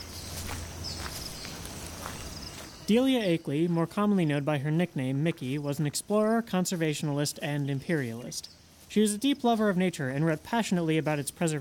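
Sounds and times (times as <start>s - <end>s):
footsteps through thick jungle underbrush in Africa: 0.0s - 2.9s, 8.0s - 9.2s
rustling of foliage: 0.0s - 11.5s
speech: 2.9s - 11.5s.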